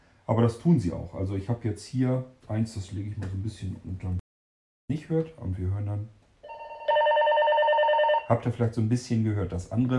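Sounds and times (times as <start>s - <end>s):
speech: 0.3s - 4.2s, 4.9s - 6.2s, 8.3s - 9.9s
two linked radio devices ringing: 6.5s - 8.4s.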